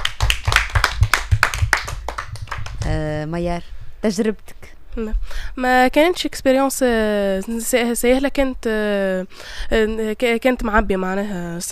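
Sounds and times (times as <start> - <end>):
audience applause: 0.0 - 2.8
speech: 2.9 - 11.7.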